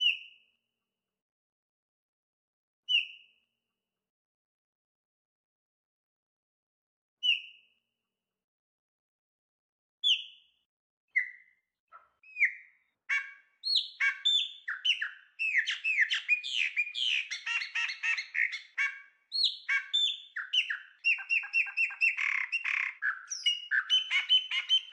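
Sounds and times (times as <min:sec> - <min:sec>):
Chopi blackbird song: 0:00.0 - 0:00.6, 0:02.9 - 0:03.4, 0:07.2 - 0:07.8, 0:10.0 - 0:10.5, 0:11.1 - 0:24.9.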